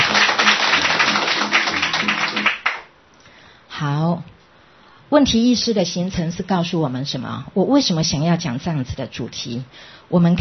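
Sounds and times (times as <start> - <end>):
audience applause: 0.0 - 2.9
speech: 5.1 - 10.3.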